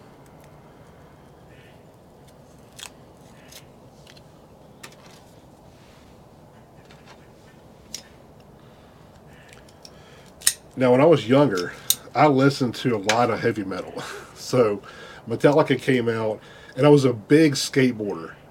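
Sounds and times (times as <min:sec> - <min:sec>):
quiet hiss: 0:00.0 - 0:18.4
cutter clipping a Drew Estate Blackened M81 Robusto cigar: 0:02.2 - 0:04.3, 0:09.4 - 0:10.8
speech: 0:10.8 - 0:18.4.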